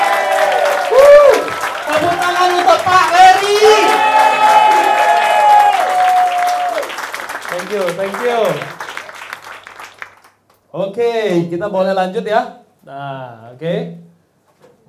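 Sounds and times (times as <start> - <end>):
loud overlapping voices and shouts: 0.0 - 9.8
audience clapping for doctors: 0.0 - 10.6
speech: 10.8 - 14.0.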